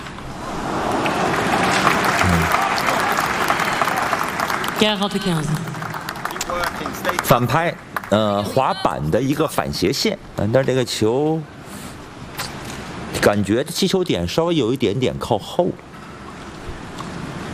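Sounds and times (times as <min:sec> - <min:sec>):
crowd applause in arena: 0:00.4 - 0:08.5
speech: 0:04.8 - 0:05.7, 0:07.1 - 0:11.5, 0:13.2 - 0:15.9.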